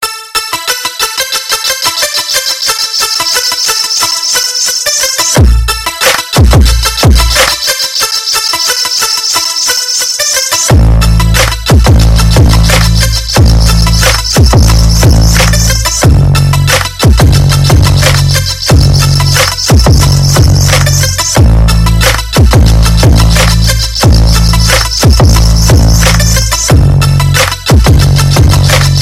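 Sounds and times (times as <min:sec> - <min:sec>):
bass: 0:05.4 - 0:07.7, 0:10.7 - 0:29.0.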